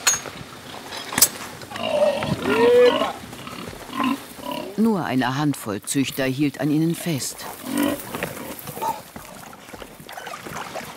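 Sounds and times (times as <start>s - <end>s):
speech: 0.2s - 0.5s, 4.8s - 8.1s
pigs grunting and snuffling: 0.4s - 5.0s, 5.9s - 10.9s
pigs squealing: 1.7s - 4.8s, 6.9s - 10.9s.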